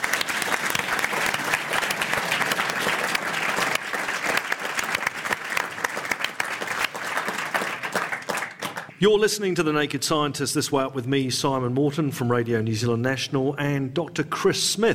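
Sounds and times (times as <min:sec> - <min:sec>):
audience applause: 0:00.0 - 0:09.0
speech: 0:09.0 - 0:14.9.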